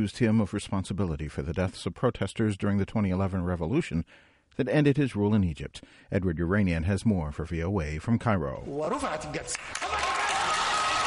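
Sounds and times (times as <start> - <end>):
speech: 0.0 - 10.0
supporters of Hosni Mubarak clapping in a Cairo courtroom: 9.4 - 11.0.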